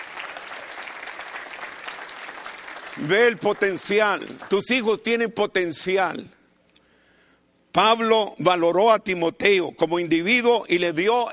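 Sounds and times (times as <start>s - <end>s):
church congregation applauding: 0.0s - 5.2s
speech: 3.0s - 6.4s, 7.7s - 11.3s.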